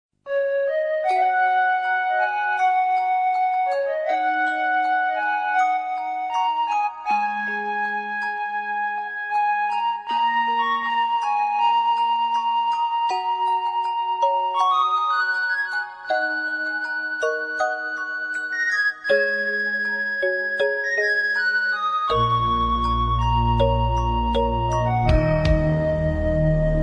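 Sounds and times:
calm music: 0.2 - 26.8.

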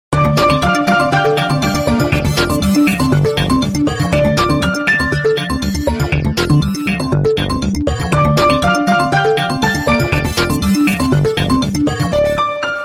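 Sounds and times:
cool ringtone: 0.2 - 12.8.

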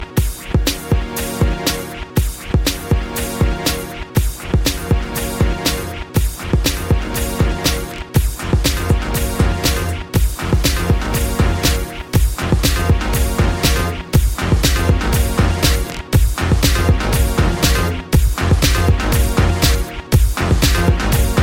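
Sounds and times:
club beat ringtone: 0.0 - 21.4.

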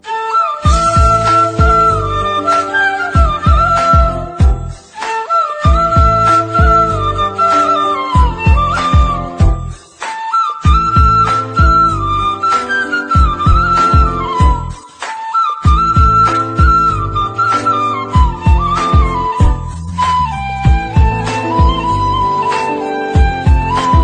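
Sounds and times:
romantic instrumental ringtone: 0.0 - 24.0.

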